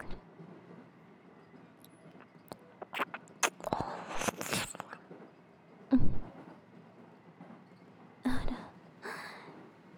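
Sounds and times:
ear licking: 0:02.8 - 0:05.0
sensual breathy sighs: 0:08.3 - 0:09.5.

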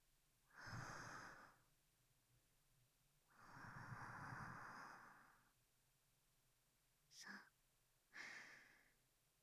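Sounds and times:
person breathing softly: 0:00.5 - 0:01.7, 0:03.3 - 0:05.5, 0:08.1 - 0:09.0.

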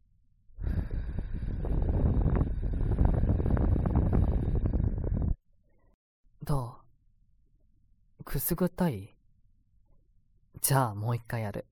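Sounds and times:
gentle breath blown into a listener's ear: 0:00.6 - 0:04.9
speech: 0:06.5 - 0:06.8, 0:08.3 - 0:09.1, 0:10.6 - 0:11.7.

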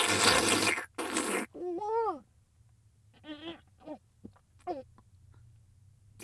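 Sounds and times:
fellatio sounds: 0:00.0 - 0:02.3, 0:03.2 - 0:05.0.

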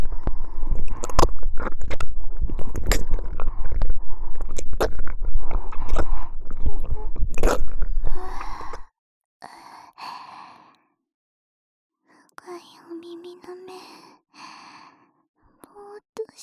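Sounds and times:
slow sticky ear licking sounds in the right ear: 0:00.0 - 0:08.8.

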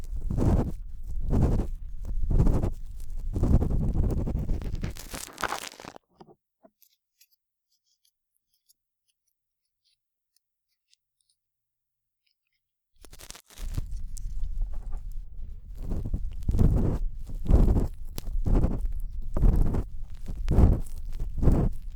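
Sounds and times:
ear pick scraping deep in the ear: 0:00.0 - 0:05.2, 0:13.0 - 0:21.9.

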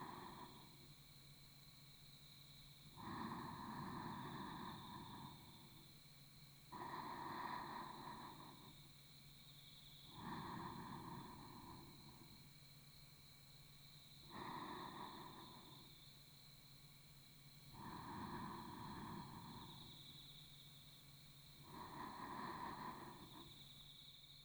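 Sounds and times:
sleep breathing on the right side: 0:03.0 - 0:05.9, 0:06.7 - 0:08.8, 0:10.1 - 0:12.4, 0:14.2 - 0:15.9, 0:17.7 - 0:20.0, 0:21.6 - 0:23.6.

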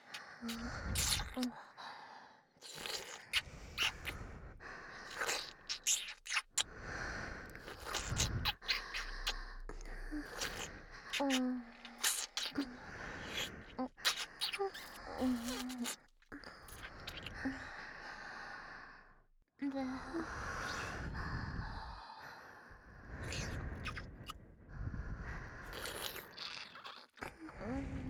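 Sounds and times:
wet sucking sounds: 0:00.0 - 0:01.6, 0:02.6 - 0:17.6, 0:23.1 - 0:24.4, 0:25.4 - 0:28.0
breathing in both ears: 0:00.0 - 0:02.6, 0:03.4 - 0:05.3, 0:06.7 - 0:11.2, 0:12.6 - 0:13.8, 0:16.4 - 0:19.3, 0:20.0 - 0:26.2.

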